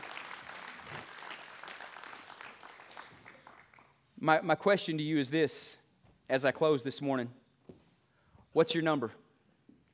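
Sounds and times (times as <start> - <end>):
audience hand clapping: 0.0 - 4.2
speech: 4.2 - 7.4, 8.5 - 9.2.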